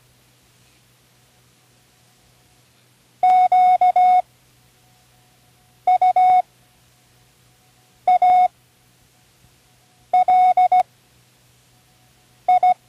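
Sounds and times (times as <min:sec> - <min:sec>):
Morse code spelling words: 0:03.2 - 0:04.2, 0:05.9 - 0:06.4, 0:08.1 - 0:08.5, 0:10.1 - 0:10.8, 0:12.5 - 0:12.8.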